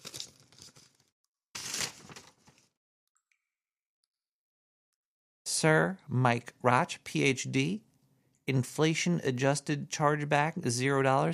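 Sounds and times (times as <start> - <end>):
paper envelope being torn open: 0.0 - 1.0, 1.6 - 2.6
speech: 5.6 - 7.9, 8.5 - 11.3.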